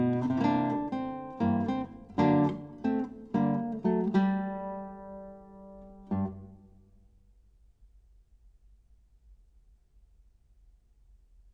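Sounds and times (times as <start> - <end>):
blues swing piece for classical guitar: 0.0 - 6.5.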